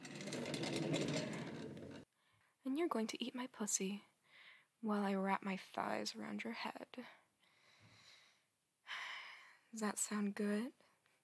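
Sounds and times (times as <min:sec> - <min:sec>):
desk chair being wheeled over: 0:00.0 - 0:02.0
speech: 0:02.8 - 0:04.1, 0:04.8 - 0:07.2, 0:09.7 - 0:10.8.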